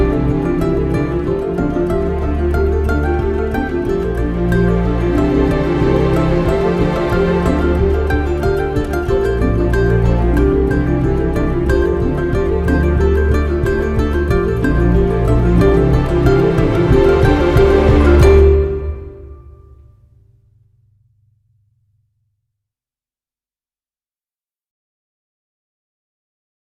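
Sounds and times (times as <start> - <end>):
symphonic version of a piece: 0.0 - 19.8.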